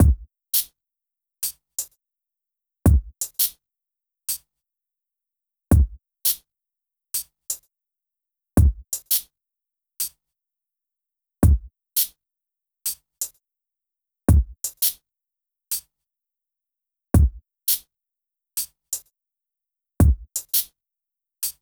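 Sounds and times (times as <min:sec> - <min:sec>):
drums: 0:00.0 - 0:00.7, 0:02.9 - 0:03.6, 0:05.7 - 0:06.4, 0:08.6 - 0:09.2, 0:11.4 - 0:12.1, 0:14.3 - 0:15.0, 0:17.2 - 0:17.8, 0:20.0 - 0:20.7.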